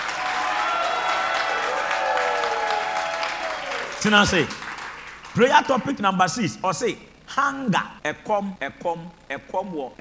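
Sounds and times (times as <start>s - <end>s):
audience shouting: 0.0s - 4.8s
audience clapping: 0.0s - 5.9s
speech: 4.0s - 4.6s, 5.3s - 9.9s.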